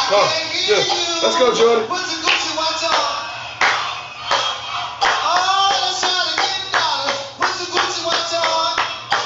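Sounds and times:
speech: 0.1 - 2.1
hand clapping: 2.2 - 9.2.

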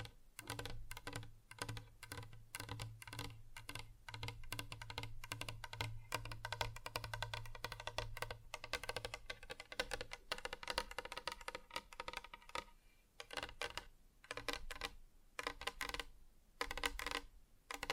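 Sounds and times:
fingers tapping rapidly on a hard surface: 0.0 - 17.9.

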